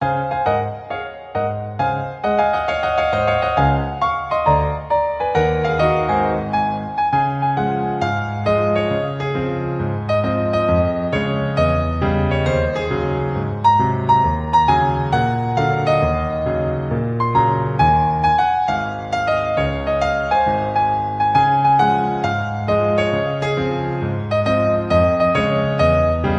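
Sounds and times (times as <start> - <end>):
piano cover: 0.0 - 26.3.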